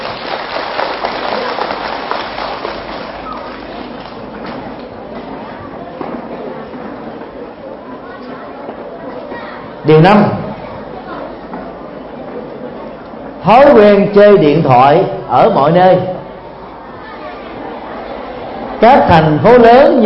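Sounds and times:
children applauding: 0:00.0 - 0:04.2
speech: 0:09.9 - 0:10.4, 0:13.5 - 0:16.2, 0:18.8 - 0:20.0.

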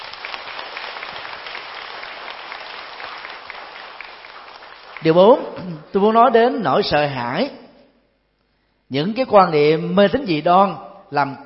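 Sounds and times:
audience applause: 0:00.0 - 0:05.7
speech: 0:05.0 - 0:07.6, 0:08.9 - 0:11.4.

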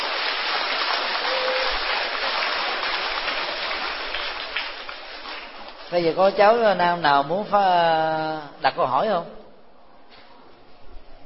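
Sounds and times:
big audience applause: 0:00.0 - 0:05.8
speech: 0:05.9 - 0:09.4.

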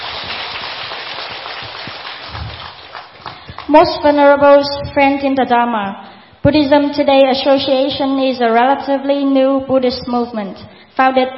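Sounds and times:
crowd applause: 0:00.0 - 0:03.8
speech: 0:03.7 - 0:11.3.

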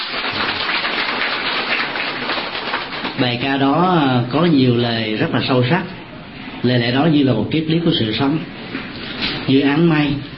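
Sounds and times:
crowd applause: 0:00.0 - 0:03.2
speech: 0:03.2 - 0:06.0, 0:06.6 - 0:08.8, 0:09.5 - 0:10.3.

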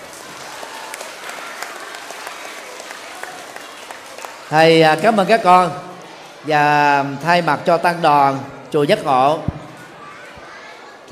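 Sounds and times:
loud audience applause: 0:00.0 - 0:06.7
speech: 0:04.5 - 0:09.5.

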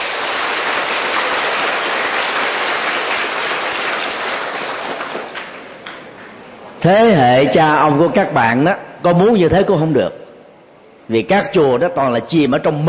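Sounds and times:
crowd applause: 0:00.0 - 0:05.8
speech: 0:06.8 - 0:10.2, 0:11.1 - 0:12.8.

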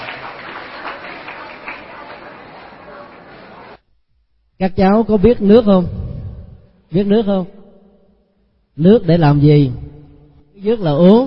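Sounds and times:
chatter: 0:00.0 - 0:03.8
children applauding: 0:00.0 - 0:03.8
speech: 0:04.6 - 0:06.0, 0:06.9 - 0:07.6, 0:08.8 - 0:09.8, 0:10.6 - 0:11.2.

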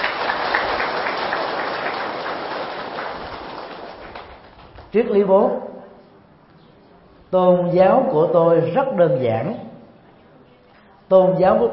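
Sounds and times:
audience applause: 0:00.0 - 0:04.9
speech: 0:04.9 - 0:05.7, 0:07.3 - 0:09.7, 0:11.1 - 0:11.7.

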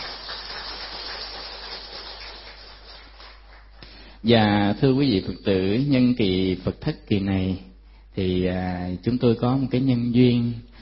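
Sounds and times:
applause: 0:00.0 - 0:04.2
speech: 0:04.2 - 0:10.8.

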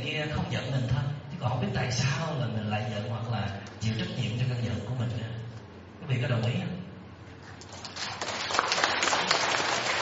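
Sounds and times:
speech: 0:00.2 - 0:05.4, 0:06.0 - 0:06.8
audience applause from women at a talk: 0:07.8 - 0:10.0.

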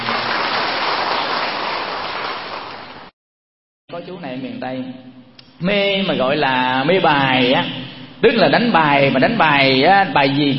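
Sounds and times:
round of applause: 0:00.0 - 0:03.1
speech: 0:04.0 - 0:10.5.

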